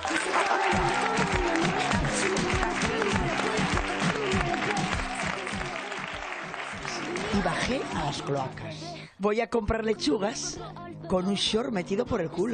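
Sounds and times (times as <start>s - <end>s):
audience applause: 0.0s - 8.3s
speech: 8.1s - 12.5s.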